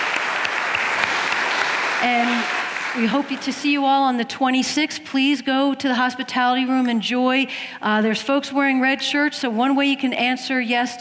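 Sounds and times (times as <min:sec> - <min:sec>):
audience applause: 0:00.0 - 0:03.8
speech: 0:02.0 - 0:10.9.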